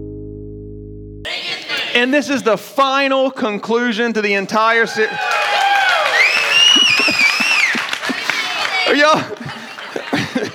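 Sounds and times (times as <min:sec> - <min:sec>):
crowd clapping: 0:01.3 - 0:02.2, 0:04.9 - 0:10.5
speech: 0:02.0 - 0:05.6, 0:09.0 - 0:09.4
voices cheering and laughing: 0:04.9 - 0:10.5
high sliding whistles: 0:06.1 - 0:07.8.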